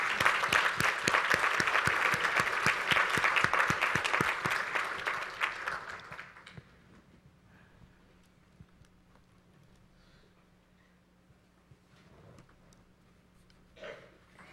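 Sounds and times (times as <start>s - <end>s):
audience applauding the choir: 0.0s - 6.6s.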